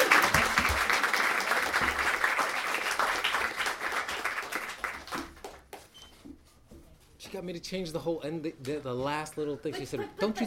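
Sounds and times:
audience applause at an evening book reading: 0.0s - 5.7s
speech: 7.3s - 10.4s
laughter: 9.6s - 10.4s.

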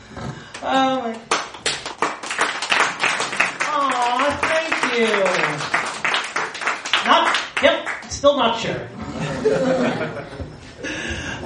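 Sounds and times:
speech: 0.6s - 1.3s, 8.2s - 10.9s
audience applause in a room: 1.3s - 8.1s
laughter: 9.0s - 11.4s.

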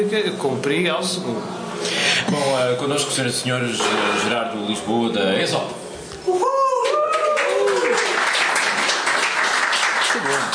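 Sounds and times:
speech: 0.0s - 6.6s
audience clapping: 6.8s - 10.5s.

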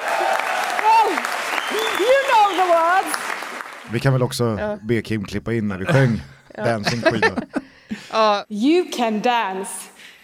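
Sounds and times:
crowd cheering and applause: 0.0s - 4.0s
speech: 3.9s - 9.9s
laughter: 5.8s - 8.1s.

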